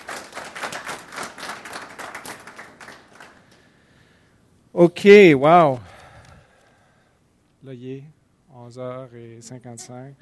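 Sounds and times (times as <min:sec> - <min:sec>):
crowd applauding: 0:00.0 - 0:03.6
speech: 0:04.7 - 0:05.9, 0:07.7 - 0:10.2.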